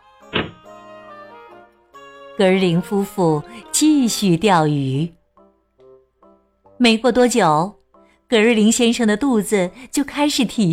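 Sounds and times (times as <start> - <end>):
door slamming shut: 0.3 - 0.7
speech: 2.4 - 5.2, 6.8 - 10.7.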